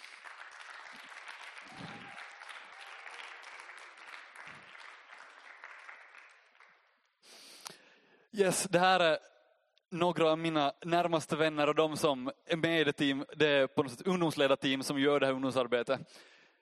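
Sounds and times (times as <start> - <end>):
cheer: 0.0 - 6.3
audience applause: 0.0 - 6.9
speech: 8.4 - 9.3, 9.9 - 16.4.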